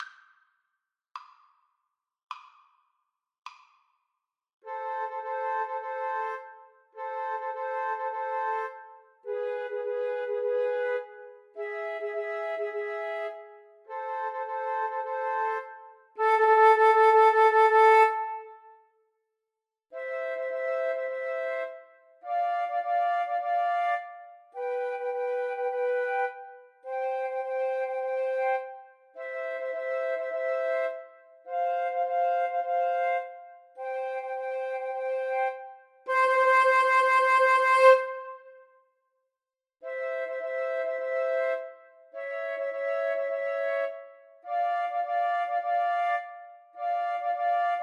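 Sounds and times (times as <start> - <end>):
flute trio playing: 4.7 - 18.6, 20.1 - 38.6, 39.9 - 47.8.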